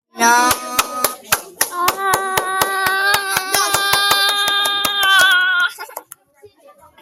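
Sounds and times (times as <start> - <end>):
clapping: 0.5 - 6.2.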